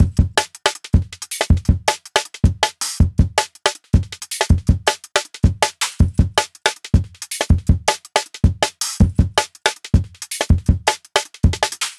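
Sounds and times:
160 bpm live jungle drum break: 0.0s - 11.9s.

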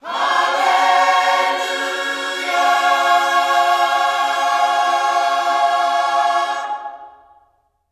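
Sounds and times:
gospel singing: 0.0s - 7.6s.

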